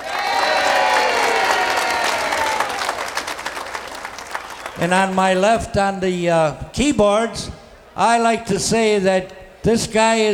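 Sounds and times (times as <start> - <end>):
whoops and cheers: 0.0 - 3.1
audience applause: 0.0 - 5.2
speech: 4.8 - 10.3.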